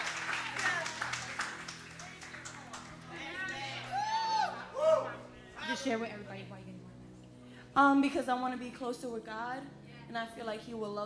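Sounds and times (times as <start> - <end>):
crowd clapping: 0.0 - 4.6
bright rising whoops and cheers: 3.5 - 5.3
speech: 5.8 - 6.9, 7.8 - 11.0.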